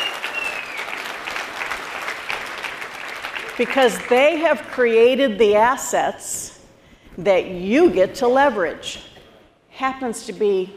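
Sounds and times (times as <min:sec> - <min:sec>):
audience applause: 0:00.0 - 0:04.3
speech: 0:03.6 - 0:06.5, 0:07.2 - 0:09.1, 0:09.8 - 0:10.7.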